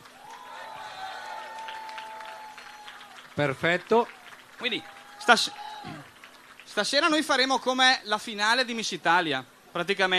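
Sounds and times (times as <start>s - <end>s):
audience applauding: 0.0s - 6.8s
speech: 3.4s - 10.1s.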